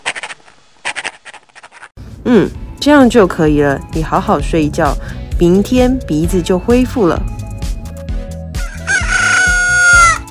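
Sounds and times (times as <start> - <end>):
speech: 2.3 - 7.4
rooster crowing: 8.6 - 10.2.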